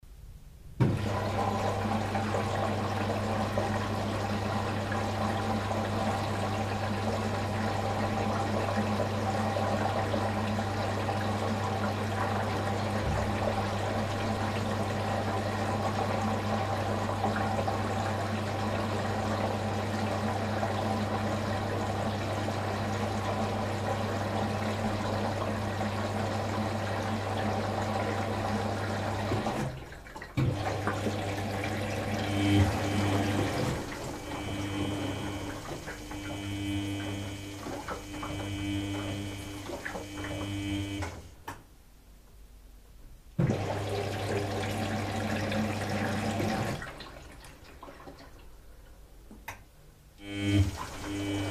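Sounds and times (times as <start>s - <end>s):
washing machine filling with water: 0.8s - 41.4s, 43.4s - 49.1s, 50.2s - 51.4s.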